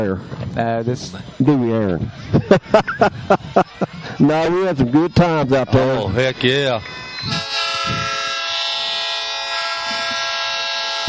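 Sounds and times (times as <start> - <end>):
speech: 0.0 - 8.0
laughter: 2.2 - 6.4
train horn: 6.2 - 11.0.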